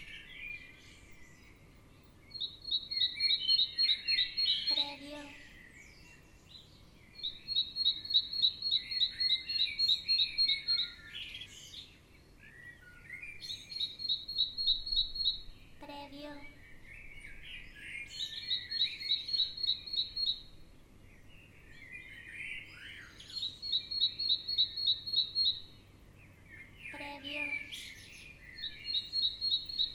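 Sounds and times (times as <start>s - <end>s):
birds singing in the morning: 0.0s - 29.9s.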